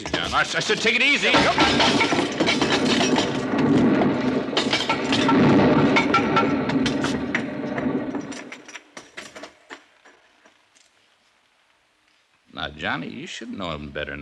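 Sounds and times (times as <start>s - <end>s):
rock pile collapsing into rubble: 0.0s - 10.8s
speech: 0.2s - 3.3s, 12.8s - 14.1s.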